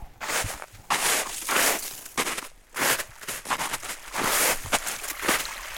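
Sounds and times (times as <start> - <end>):
heavy footsteps crunching through deep snow: 0.2 - 5.5.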